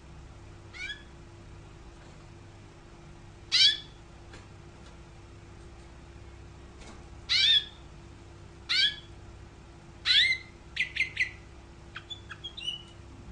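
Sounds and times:
canary chirping: 0:00.7 - 0:01.1, 0:03.5 - 0:04.0, 0:07.3 - 0:07.8, 0:08.7 - 0:09.1, 0:10.0 - 0:13.0.

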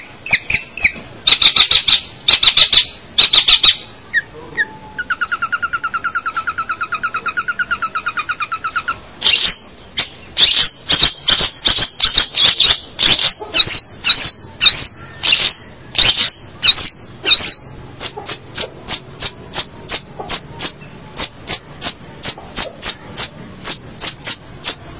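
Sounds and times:
long-tailed shrike song chatter: 0:00.0 - 0:24.9.

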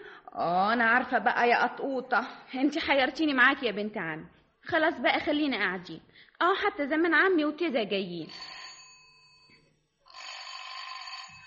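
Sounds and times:
speech: 0:00.4 - 0:08.6
telephone ringing with a metallic bell: 0:08.2 - 0:11.4.

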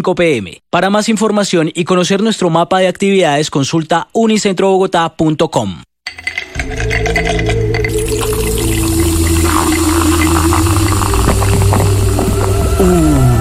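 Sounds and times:
speech: 0:00.0 - 0:07.6
cold Canada Dry ginger ale being poured, fizzing: 0:06.9 - 0:12.9.

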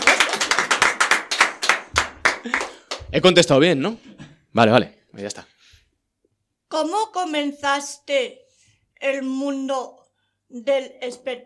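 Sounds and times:
small studio audience clapping on a Spanish entertainment show: 0:00.0 - 0:03.6
speech: 0:02.4 - 0:05.6, 0:06.7 - 0:08.4, 0:09.0 - 0:11.4.

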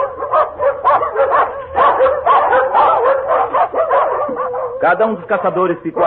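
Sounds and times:
pack of hunting dogs barking: 0:00.0 - 0:06.0
speech: 0:04.9 - 0:06.0.

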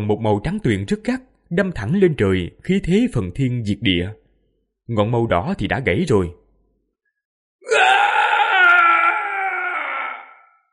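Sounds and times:
speech: 0:00.0 - 0:04.2, 0:04.9 - 0:06.4
demon king's anguished shrieking scream: 0:07.6 - 0:10.7.

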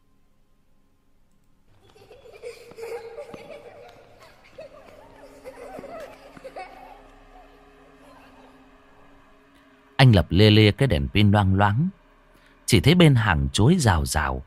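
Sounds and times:
children giggling: 0:01.7 - 0:09.2
speech: 0:10.1 - 0:12.0, 0:12.7 - 0:14.4.

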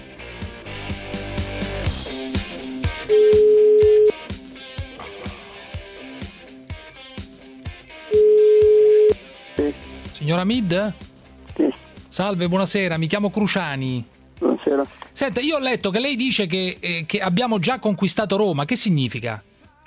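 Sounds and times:
busy rhythmic music bed with sharp regular beats: 0:00.0 - 0:08.2, 0:09.1 - 0:19.8
telephone ringback tones as a call is placed to a man: 0:03.1 - 0:04.2, 0:08.1 - 0:09.2
speech: 0:10.3 - 0:11.0, 0:12.2 - 0:19.5.

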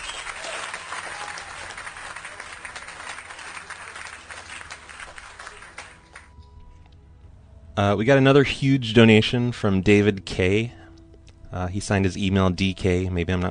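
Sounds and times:
applause: 0:00.0 - 0:06.3
speech: 0:07.8 - 0:10.8, 0:11.6 - 0:13.4.

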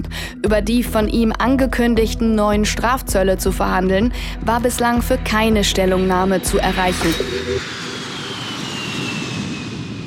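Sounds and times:
speech: 0:00.4 - 0:07.9
airplane engine roar in flight to Washington: 0:04.2 - 0:10.0.

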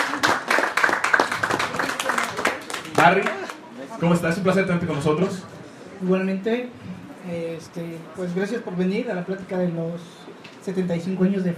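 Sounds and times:
audience applause: 0:00.0 - 0:03.7
speech: 0:03.0 - 0:03.4, 0:04.0 - 0:11.5.

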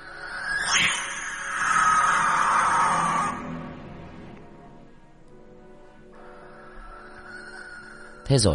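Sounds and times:
barn owl screeching: 0:00.0 - 0:04.3, 0:06.3 - 0:08.5.

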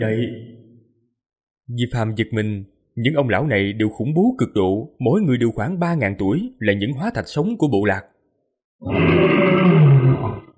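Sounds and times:
speech: 0:00.0 - 0:00.6, 0:01.7 - 0:08.1, 0:08.8 - 0:10.0
white tiger roaring: 0:08.8 - 0:10.5.

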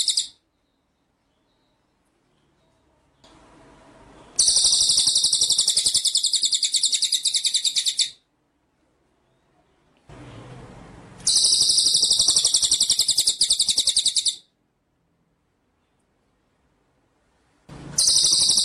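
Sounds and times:
white-rumped shama trilling: 0:00.0 - 0:00.4, 0:04.4 - 0:08.2, 0:11.2 - 0:14.5, 0:18.0 - 0:18.6.

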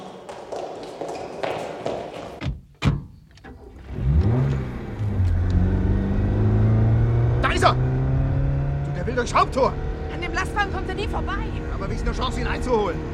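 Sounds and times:
car engine starting, revving and accelerating away: 0:03.5 - 0:13.1
speech: 0:09.2 - 0:13.1.

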